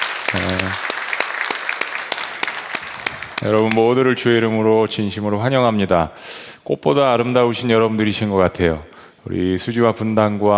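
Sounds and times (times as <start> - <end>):
audience applause: 0.0 - 4.4
speech: 3.4 - 10.5.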